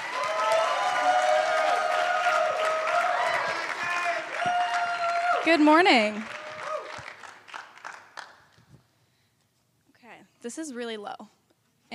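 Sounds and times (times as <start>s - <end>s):
audience applause welcoming a performer onto the stage at a fine arts showcase: 0.0s - 8.5s
speech: 5.4s - 6.4s, 10.5s - 11.9s.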